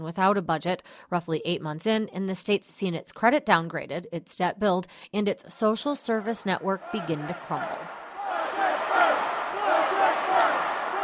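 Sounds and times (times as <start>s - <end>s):
speech: 0.0s - 8.0s
demonstrators chanting outside: 6.7s - 11.0s.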